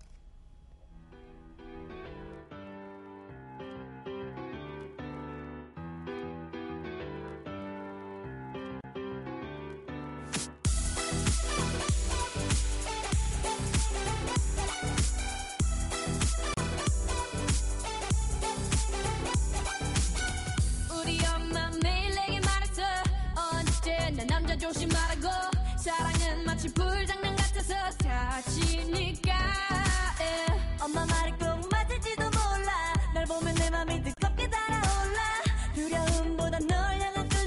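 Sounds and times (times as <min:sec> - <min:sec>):
pop song intro: 0:10.7 - 0:37.4.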